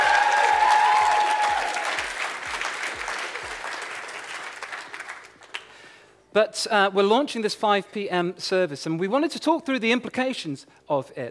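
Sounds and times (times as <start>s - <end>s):
audience applause: 0.0s - 5.7s
speech: 6.4s - 11.3s.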